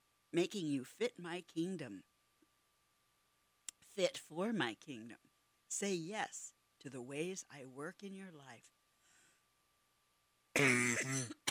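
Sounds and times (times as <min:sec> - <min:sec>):
speech: 0:00.3 - 0:02.1, 0:04.0 - 0:08.8, 0:10.6 - 0:11.4
person with allergies clearing throat: 0:10.6 - 0:11.5.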